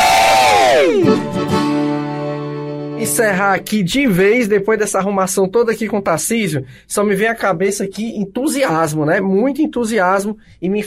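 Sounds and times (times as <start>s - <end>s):
crowd booing: 0.0s - 1.9s
speech: 3.0s - 10.8s.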